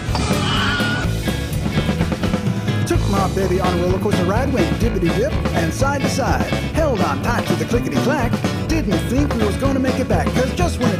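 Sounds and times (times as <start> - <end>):
Wilhelm scream: 0.0 - 1.1
busy rhythmic music track: 0.0 - 10.9
speech: 3.4 - 10.9.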